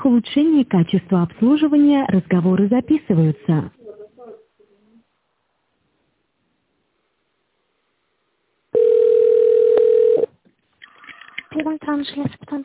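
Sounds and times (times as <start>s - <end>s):
speech: 0.1s - 3.8s, 11.6s - 12.6s
telephone ringback tone while a call connects: 8.8s - 10.3s.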